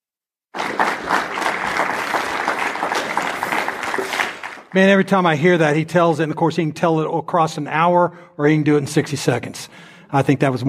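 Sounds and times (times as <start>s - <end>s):
round of applause: 0.6s - 4.8s
speech: 4.7s - 10.6s.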